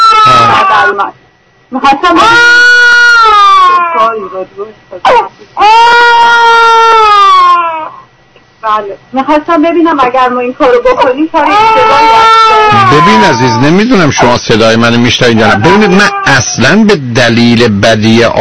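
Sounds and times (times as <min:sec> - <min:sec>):
baby crying during a phone call: 0:00.0 - 0:01.1, 0:02.1 - 0:04.4, 0:05.0 - 0:08.0, 0:11.3 - 0:16.6
speech: 0:00.9 - 0:03.0, 0:04.0 - 0:07.7, 0:08.6 - 0:18.3.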